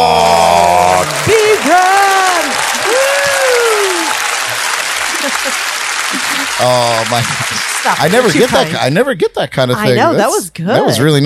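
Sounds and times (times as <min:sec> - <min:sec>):
audience applause for the host: 0:00.0 - 0:09.0
laughter: 0:05.0 - 0:11.2
speech: 0:06.6 - 0:11.2.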